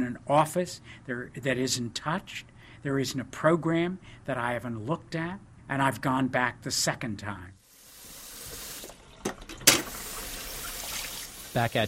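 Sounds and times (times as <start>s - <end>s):
speech: 0.0s - 7.6s, 11.6s - 11.8s
water running from a tap into a sink: 7.8s - 11.8s.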